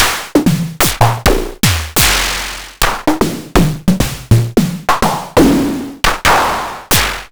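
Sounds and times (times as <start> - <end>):
raw MS-20 synthesizer snare drums: 0.0 - 7.3.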